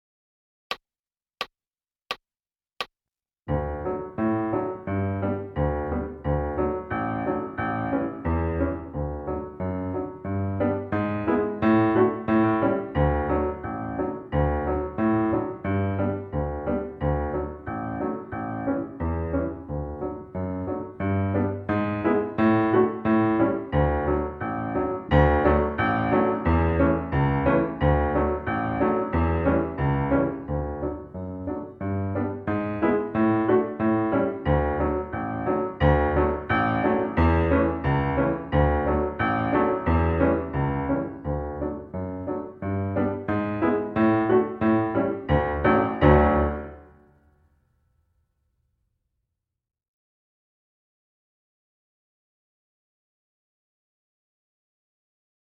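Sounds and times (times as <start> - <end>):
piano: 3.4 - 47.5.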